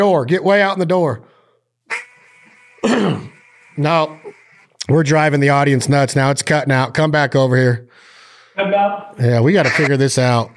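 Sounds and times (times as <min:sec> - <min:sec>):
speech: 0:00.0 - 0:01.3, 0:02.8 - 0:10.5
duck call quacking: 0:01.9 - 0:04.8, 0:09.6 - 0:10.3.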